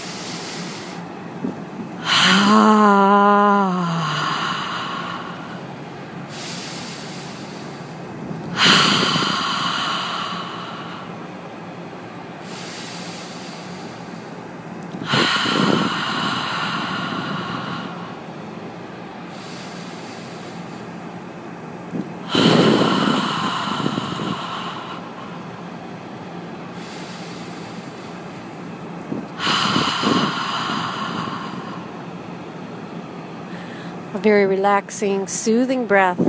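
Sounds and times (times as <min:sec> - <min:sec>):
sharp nasal inhale in a yoga breathing practice: 0:00.0 - 0:01.0, 0:06.3 - 0:07.9, 0:08.6 - 0:11.3, 0:12.4 - 0:14.4, 0:15.0 - 0:18.3, 0:19.3 - 0:20.8, 0:22.2 - 0:25.6, 0:26.7 - 0:28.4, 0:29.2 - 0:32.1
long breathy open-mouth exhale on ha in a yoga breathing practice: 0:00.0 - 0:01.1, 0:02.0 - 0:11.4, 0:12.4 - 0:14.4, 0:15.0 - 0:18.4, 0:19.2 - 0:20.9, 0:22.2 - 0:25.8, 0:26.7 - 0:32.4
speech: 0:34.2 - 0:36.2.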